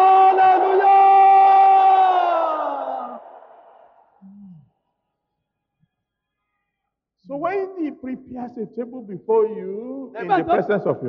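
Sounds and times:
audience shouting hallelujah: 0:00.0 - 0:04.0
speech: 0:08.1 - 0:11.0.

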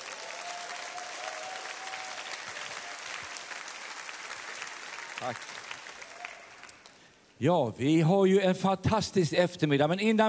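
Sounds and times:
warm audience applause: 0:00.0 - 0:06.9
speech: 0:05.2 - 0:05.6, 0:07.4 - 0:10.2.

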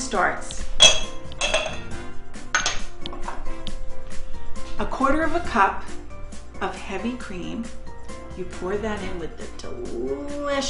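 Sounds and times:
speech: 0:00.1 - 0:00.9, 0:04.8 - 0:06.0, 0:06.6 - 0:07.8, 0:08.4 - 0:10.6
heavy metal cookware clanking and scraping: 0:00.8 - 0:03.0.

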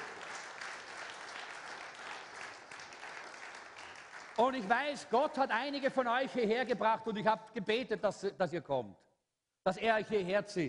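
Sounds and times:
audience applause: 0:00.0 - 0:04.7
speech: 0:04.4 - 0:10.6.

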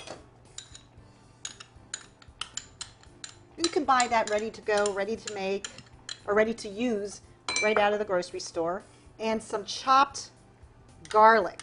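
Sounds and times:
utensil clinking against a bowl while stirring hoisin sauce marinade: 0:00.0 - 0:06.4
speech: 0:03.9 - 0:10.4, 0:11.1 - 0:11.6.

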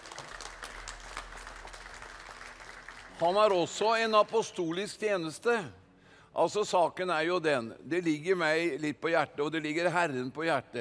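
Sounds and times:
audience applause: 0:00.0 - 0:04.6
speech: 0:03.2 - 0:05.8, 0:06.4 - 0:10.7.

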